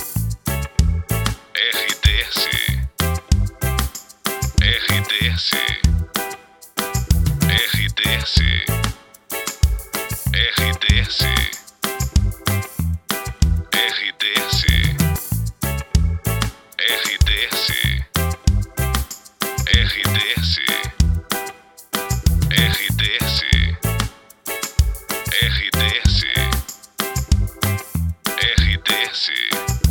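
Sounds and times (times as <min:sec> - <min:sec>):
popular background music for voice-over: 0:00.0 - 0:29.8.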